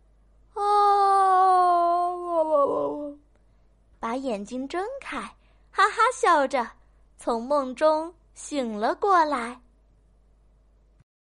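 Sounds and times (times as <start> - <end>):
voice imitating a yawn: 0.6 - 3.2
speech: 4.2 - 9.6.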